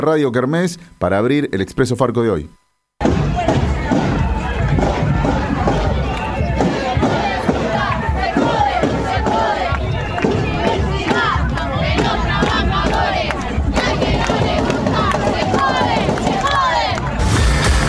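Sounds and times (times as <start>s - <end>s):
speech: 0.0s - 3.2s
huge crowd on a march for the public university in Santa Rosa, La Pampa: 3.0s - 17.8s.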